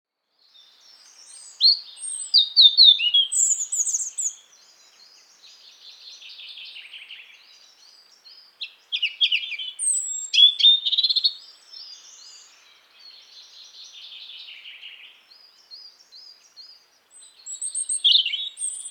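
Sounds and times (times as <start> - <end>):
European robin song: 0.4 - 18.8.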